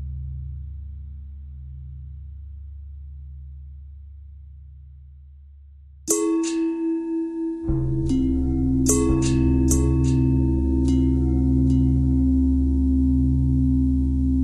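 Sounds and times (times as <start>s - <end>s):
long bell ringing: 6.1s - 14.2s.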